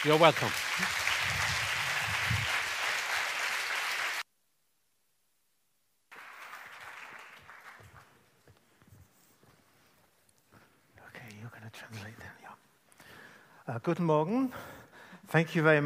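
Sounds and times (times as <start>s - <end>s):
speech: 0.0s - 1.0s, 13.8s - 14.7s, 15.3s - 15.8s
audience applause: 0.0s - 4.2s, 6.1s - 8.4s.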